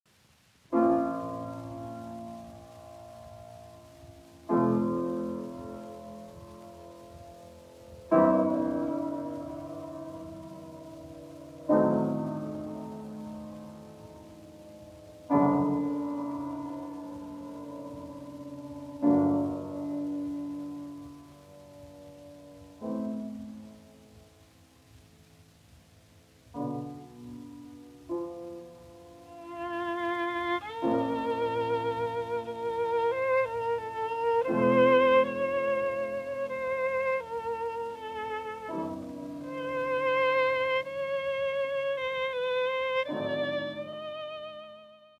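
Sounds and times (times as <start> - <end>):
piano trio in E minor largo: 0.1 - 45.1.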